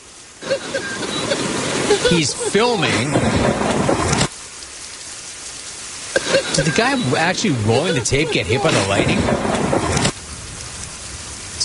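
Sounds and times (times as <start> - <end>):
faint hiss: 0.0 - 11.6
heavy rain: 0.0 - 11.6
laughter: 0.4 - 3.2, 6.2 - 9.8
speech: 2.1 - 3.8, 6.6 - 10.1.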